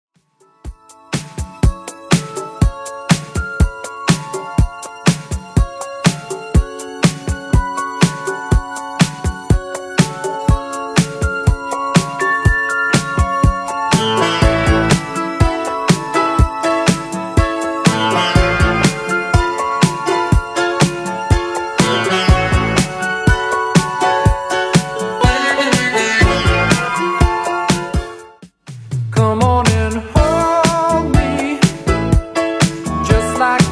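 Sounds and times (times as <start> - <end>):
80s drum loop at 122 bpm: 0.7 - 33.7.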